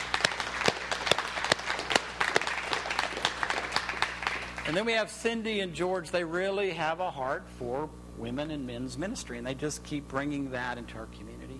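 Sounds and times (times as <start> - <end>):
audience applause: 0.0 - 4.9
speech: 4.7 - 11.4.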